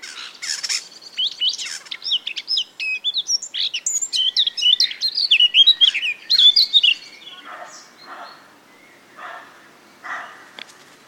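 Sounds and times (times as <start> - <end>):
Sylvia atricapilla singing: 0.2 - 9.0.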